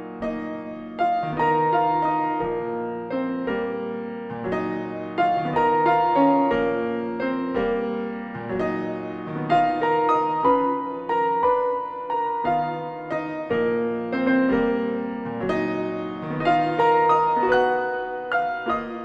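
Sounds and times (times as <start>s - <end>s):
drunken piano playing: 0.0s - 19.0s.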